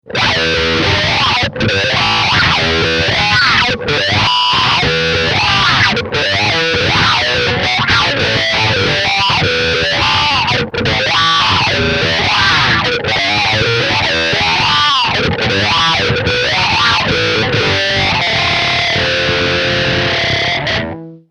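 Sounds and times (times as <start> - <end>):
schranz techno: 0.2 - 21.0.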